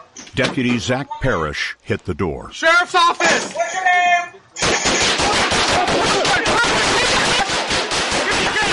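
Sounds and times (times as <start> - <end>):
speech: 0.4 - 3.9
gunfire during a police shootout: 4.6 - 8.5.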